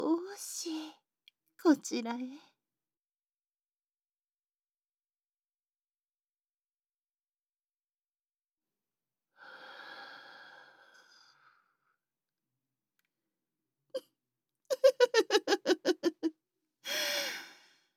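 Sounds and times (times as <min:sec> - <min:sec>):
speech: 0:01.6 - 0:02.5
breath blown softly onto listener's face: 0:09.4 - 0:11.6
laughter: 0:14.7 - 0:16.3.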